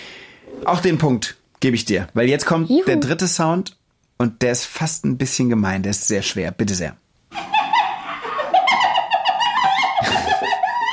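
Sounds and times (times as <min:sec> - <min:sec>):
speech: 0:00.7 - 0:07.0
spotted hyena laughing call: 0:07.3 - 0:10.9.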